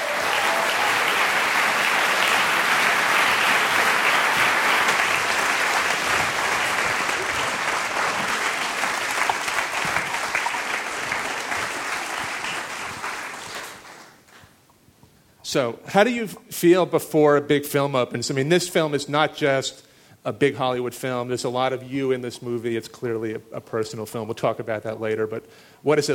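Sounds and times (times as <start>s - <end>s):
audience applause at the Museum of the Moving Image in New York City: 0.0s - 14.4s
speech: 15.5s - 26.1s.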